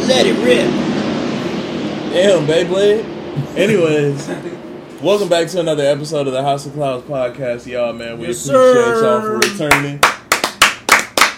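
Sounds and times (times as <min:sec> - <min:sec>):
speech: 0:00.1 - 0:00.9, 0:02.1 - 0:10.2
loud sharp hand claps: 0:09.4 - 0:11.3.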